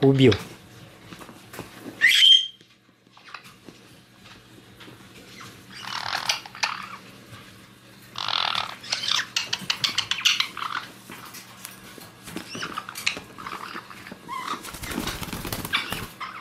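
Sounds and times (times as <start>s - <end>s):
speech: 0.0s - 0.5s
white-bellied caique chick squawking and chattering: 2.0s - 2.6s, 5.7s - 7.0s, 8.2s - 11.0s, 12.5s - 16.3s.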